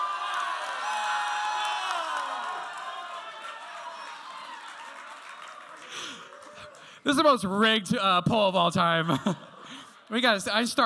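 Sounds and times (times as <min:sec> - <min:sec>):
audience cheering: 0:00.0 - 0:07.0
speech: 0:07.0 - 0:09.5, 0:10.1 - 0:10.8.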